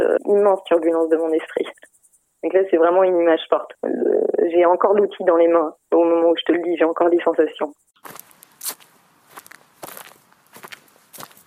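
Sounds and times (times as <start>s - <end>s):
speech: 0.3s - 8.8s
footsteps walking in a small garden: 8.0s - 11.4s.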